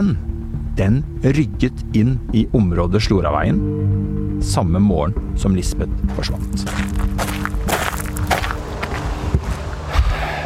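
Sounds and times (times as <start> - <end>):
speech: 0.0 - 7.4
footsteps on a wide gravel footpath up to Hagenhuset from Langvannet: 6.0 - 9.8
continuous rustling noise: 6.5 - 10.2.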